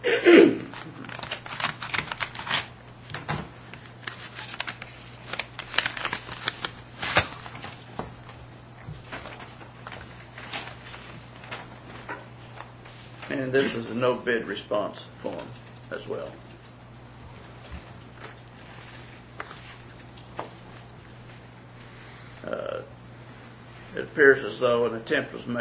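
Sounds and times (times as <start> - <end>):
low steady hum: 0.0 - 25.5
envelope being cut open: 0.7 - 2.8, 3.8 - 7.6
paper crackles and rustles: 0.7 - 13.7
speech: 13.6 - 16.5, 24.2 - 25.5.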